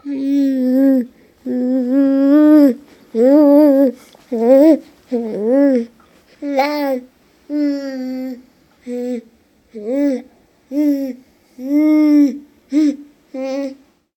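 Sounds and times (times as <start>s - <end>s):
baby saying mmm: 0.0s - 13.8s.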